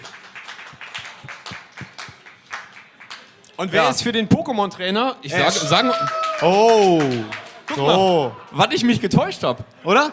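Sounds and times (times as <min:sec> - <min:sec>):
hand clapping: 0:00.0 - 0:03.6, 0:05.9 - 0:07.8
speech: 0:03.6 - 0:10.1.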